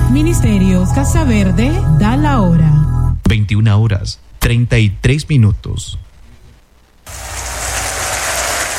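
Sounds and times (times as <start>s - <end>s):
speech: 0.2s - 6.0s
church congregation applauding: 7.1s - 8.7s.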